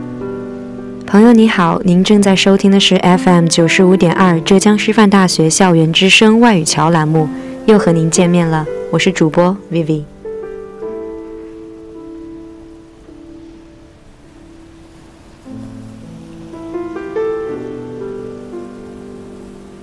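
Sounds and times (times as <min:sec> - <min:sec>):
rain falling outside: 0:00.0 - 0:19.8
speech: 0:01.1 - 0:10.1.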